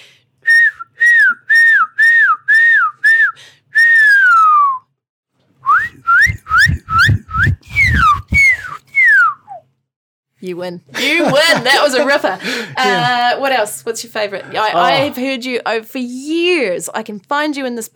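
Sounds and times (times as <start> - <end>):
person whistling an imitation of a shining cuckoo: 0.5 - 4.9, 5.6 - 9.6
speech: 10.4 - 17.9
laughter: 11.0 - 13.4.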